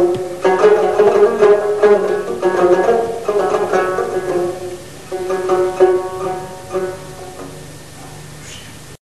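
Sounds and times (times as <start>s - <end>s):
rubab playing: 0.0s - 9.0s.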